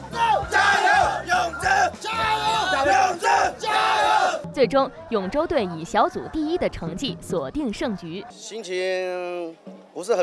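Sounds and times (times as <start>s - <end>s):
crowd of supporters shouting encouragement for the Chenzhou team: 0.0s - 6.3s
speech: 4.6s - 10.2s.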